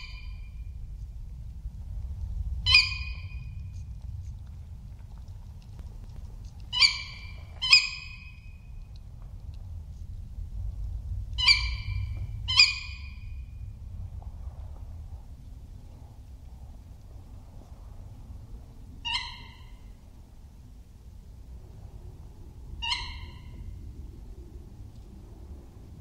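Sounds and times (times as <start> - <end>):
low rumble: 0.0 - 26.0
tawny owl calling: 2.6 - 3.5, 6.7 - 8.6, 11.4 - 13.5, 19.0 - 19.9, 22.8 - 23.8.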